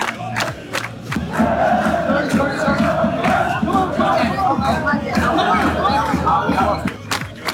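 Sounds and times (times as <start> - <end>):
noisy street crowd babble: 0.0 - 7.5
people shouting: 1.3 - 6.8.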